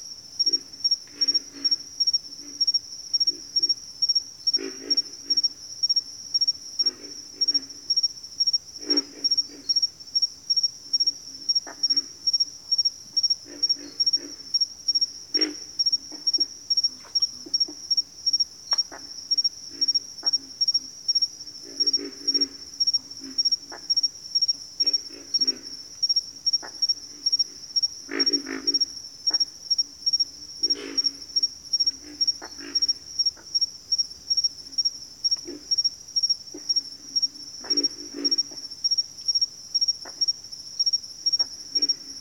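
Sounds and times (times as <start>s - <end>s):
loud rhythmically pulsing insect chorus: 0.0s - 42.1s
pig frog grunts: 4.5s - 5.6s, 6.4s - 8.0s, 8.8s - 9.9s, 11.1s - 12.4s, 13.2s - 24.0s, 24.8s - 33.7s, 34.7s - 35.8s, 36.5s - 38.8s, 41.3s - 42.1s.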